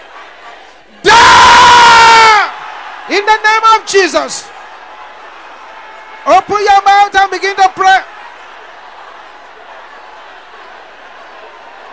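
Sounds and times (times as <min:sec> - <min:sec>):
audience shouting loudly: 0:00.0 - 0:11.9
speech: 0:03.3 - 0:04.5, 0:06.3 - 0:08.1.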